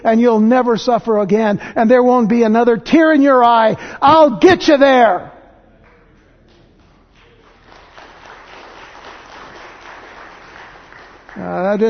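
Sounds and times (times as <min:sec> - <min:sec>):
speech: 0:00.0 - 0:05.4, 0:11.4 - 0:11.8
audience applause: 0:06.8 - 0:11.8.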